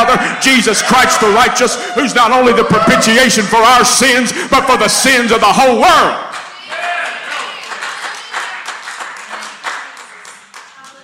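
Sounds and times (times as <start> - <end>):
speech: 0.1 - 6.4
clapping from behind a door: 6.3 - 11.0.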